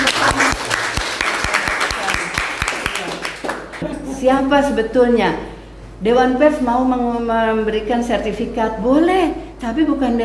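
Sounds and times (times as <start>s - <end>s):
audience applause at a press certification gathering in Indonesia: 0.0s - 3.8s
speech: 4.2s - 10.2s.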